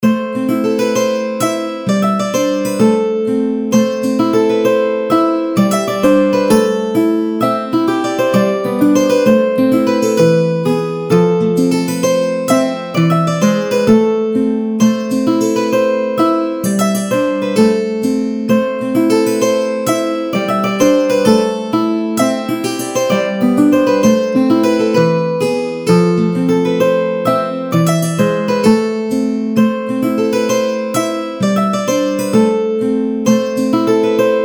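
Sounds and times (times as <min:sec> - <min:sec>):
medieval music loop: 0:00.0 - 0:34.4.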